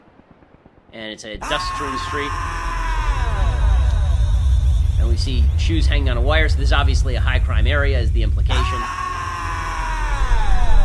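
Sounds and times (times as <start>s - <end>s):
speech: 0.9s - 2.6s, 5.2s - 9.0s
man screaming nonsensically: 1.4s - 4.3s, 8.5s - 10.8s.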